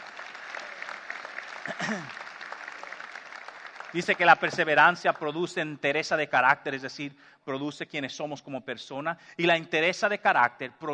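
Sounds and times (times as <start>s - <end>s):
audience applause: 0.0s - 4.9s
speech: 1.8s - 2.2s, 3.9s - 10.9s.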